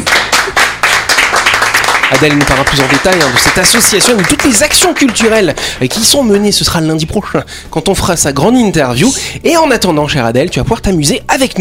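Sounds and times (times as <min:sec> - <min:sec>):
room full of people applauding a guest: 0:00.0 - 0:06.0
speech: 0:02.1 - 0:11.5.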